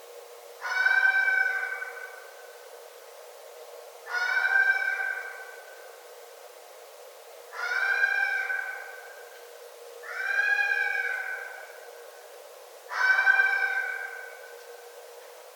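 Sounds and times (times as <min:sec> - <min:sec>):
red fox wailing cries: 0:00.6 - 0:02.2, 0:04.1 - 0:05.5, 0:07.6 - 0:09.0, 0:10.0 - 0:11.7, 0:12.9 - 0:14.4.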